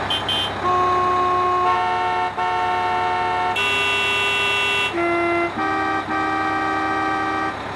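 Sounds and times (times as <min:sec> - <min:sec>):
horns: 0:00.1 - 0:07.6.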